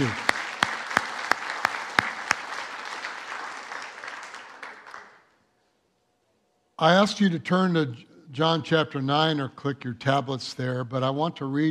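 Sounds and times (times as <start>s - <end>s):
speech: 0.0s - 0.2s, 6.8s - 11.7s
crowd applause: 0.0s - 5.3s.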